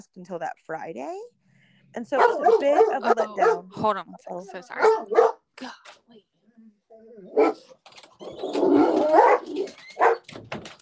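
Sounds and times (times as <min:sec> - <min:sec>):
speech: 0:00.0 - 0:10.6
dogs barking at car door outside: 0:02.1 - 0:03.7, 0:04.7 - 0:05.5, 0:07.3 - 0:10.3.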